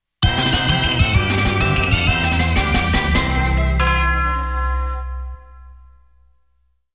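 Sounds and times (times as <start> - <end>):
game over background music: 0.2 - 5.9.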